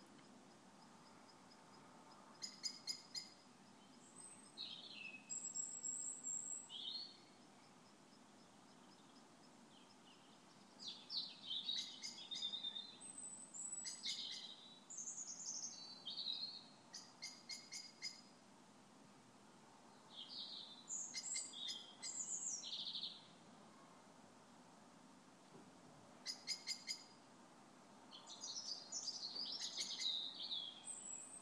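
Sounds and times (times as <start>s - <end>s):
equinox birdsong outside a window: 2.2s - 18.3s, 19.9s - 23.4s, 26.2s - 27.2s, 28.1s - 31.4s.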